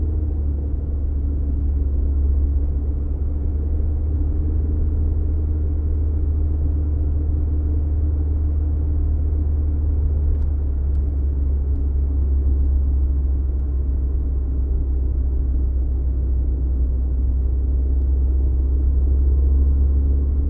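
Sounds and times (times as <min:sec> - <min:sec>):
car driving heard from inside: 0:00.0 - 0:20.4.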